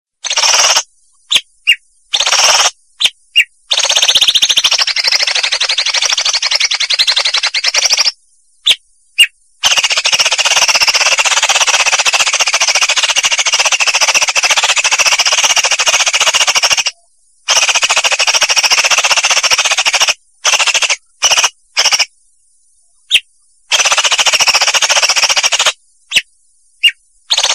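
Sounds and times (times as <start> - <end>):
Vietnam leafbird chattering song: 0.2 - 22.1, 22.8 - 27.5.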